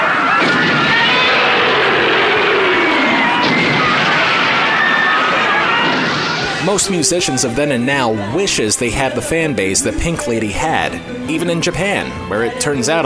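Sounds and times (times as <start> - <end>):
concert crowd screaming and cheering: 0.0 - 9.7
speech: 6.7 - 13.0.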